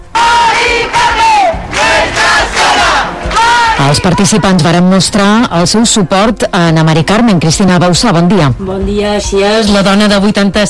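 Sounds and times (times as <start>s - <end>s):
protest crowd chanting at a rally: 0.0s - 4.4s
speech: 3.8s - 10.6s.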